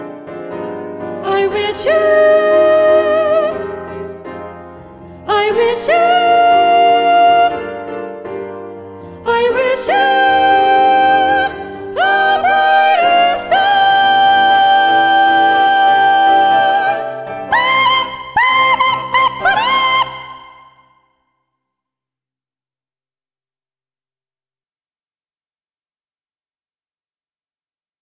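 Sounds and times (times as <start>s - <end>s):
first soprano singing: 1.0s - 8.2s, 8.9s - 20.9s.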